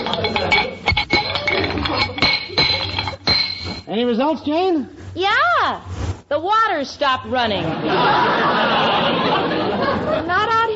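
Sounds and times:
wrench working on loose metal pipes: 0:00.0 - 0:03.9
speech: 0:03.9 - 0:09.5
laughter: 0:07.6 - 0:10.6.

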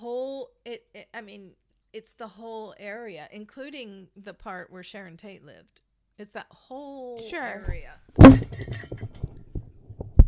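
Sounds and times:
speech: 0:00.7 - 0:09.1
microphone knocked over: 0:07.7 - 0:10.2.

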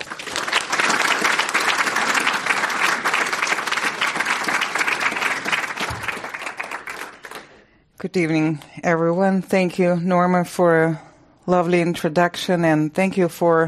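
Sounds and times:
audience applause welcoming a speaker at a lecture in San Francisco: 0:00.0 - 0:07.6
speech: 0:08.0 - 0:13.6.

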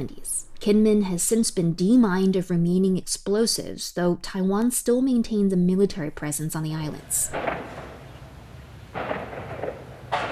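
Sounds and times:
speech: 0:00.0 - 0:07.6
low noise: 0:00.0 - 0:10.3
artillery practice firing on Kinmen island Taiwan: 0:07.2 - 0:10.3.

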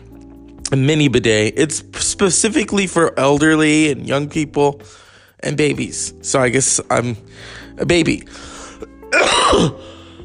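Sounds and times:
speech: 0:00.7 - 0:08.5, 0:09.1 - 0:09.9
person coughing: 0:08.9 - 0:09.9.

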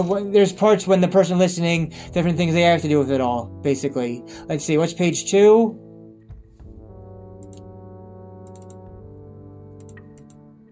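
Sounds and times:
speech: 0:00.0 - 0:05.8
computer mouse clicking: 0:07.4 - 0:07.7, 0:08.4 - 0:08.8, 0:09.8 - 0:10.4.

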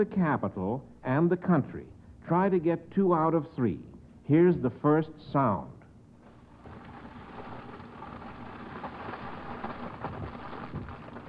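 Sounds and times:
speech: 0:00.0 - 0:05.8
paper burning: 0:06.2 - 0:11.2.

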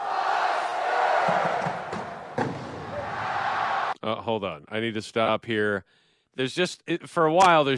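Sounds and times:
stadium crowd screaming and yelling a team chant: 0:00.0 - 0:04.0
speech: 0:01.3 - 0:01.7, 0:04.2 - 0:07.7.

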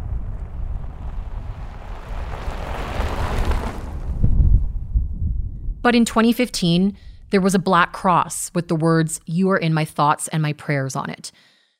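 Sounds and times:
distant car passing: 0:00.0 - 0:04.9
low gusty wind buffeting: 0:00.0 - 0:09.3
speech: 0:05.8 - 0:11.5.

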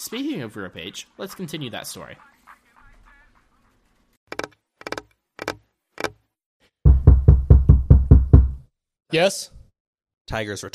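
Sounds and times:
speech: 0:00.1 - 0:02.4, 0:09.1 - 0:09.6, 0:10.3 - 0:10.7
knocking on a door: 0:06.8 - 0:08.6.

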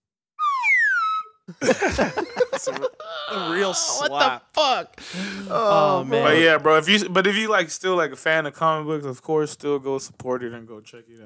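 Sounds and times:
slide whistle: 0:00.4 - 0:01.5
laughter: 0:01.5 - 0:06.5
speech: 0:01.5 - 0:11.2.

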